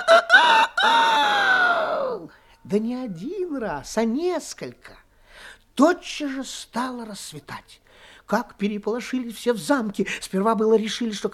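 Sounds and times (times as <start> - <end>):
rooster crowing loudly: 0.0 - 2.2
speech: 2.7 - 11.3.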